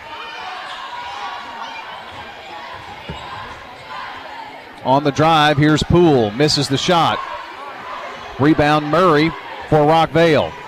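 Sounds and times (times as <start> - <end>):
crowd roar: 0.0 - 10.6
basketball bouncing on the court during a game: 2.1 - 4.0
speech: 4.8 - 7.3, 8.4 - 10.6.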